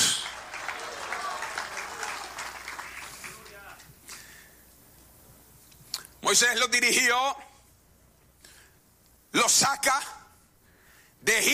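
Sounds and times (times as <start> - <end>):
audience applause: 0.0 - 3.9
speech: 6.3 - 7.5, 9.4 - 10.2, 11.2 - 11.5.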